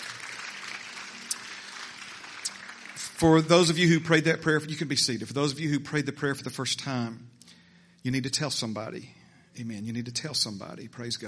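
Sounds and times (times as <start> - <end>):
audience applause: 0.0 - 4.0
speech: 3.2 - 7.4, 8.0 - 11.2.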